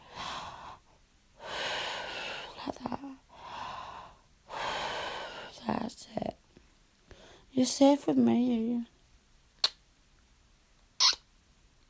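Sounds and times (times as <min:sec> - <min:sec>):
person breathing in and out: 0:00.0 - 0:02.6, 0:03.3 - 0:05.6, 0:07.0 - 0:07.5
speech: 0:07.6 - 0:08.9.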